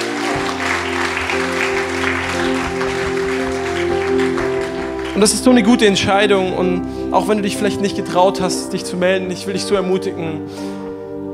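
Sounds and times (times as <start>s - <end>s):
audience applause: 0.0s - 6.4s
speech: 5.2s - 10.8s.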